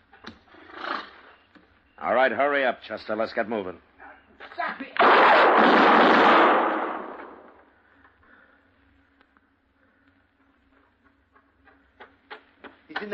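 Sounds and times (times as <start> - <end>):
speech: 2.0 - 3.9
gunshots in a western radio drama: 5.0 - 7.6.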